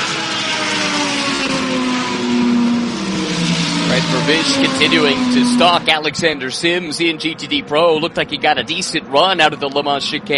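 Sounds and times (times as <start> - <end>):
race car engine firing up, leaving pits: 0.0 - 6.7
speech: 4.3 - 10.3.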